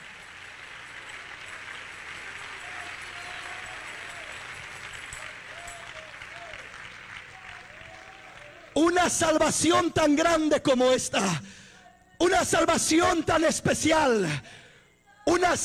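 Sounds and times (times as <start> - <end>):
audience clapping: 0.0 - 11.4
speech: 9.0 - 11.6, 12.2 - 14.6, 15.4 - 15.6.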